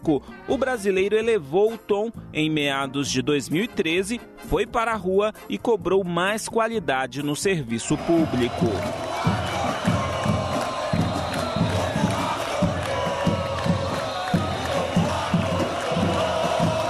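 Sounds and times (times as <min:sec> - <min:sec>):
speech: 0:00.0 - 0:09.2
massive crowd shouting and cheering at a 2013 street protest in Brazil: 0:07.8 - 0:16.8.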